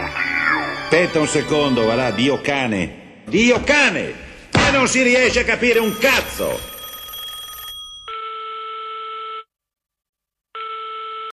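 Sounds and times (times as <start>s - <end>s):
speech: 0.9s - 6.7s
telephone ringing: 5.6s - 9.5s.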